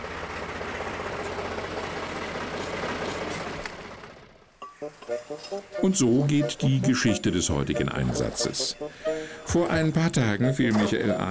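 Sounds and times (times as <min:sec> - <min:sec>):
slurry tanker truck engine running: 0:00.0 - 0:04.6
speech: 0:04.8 - 0:11.2.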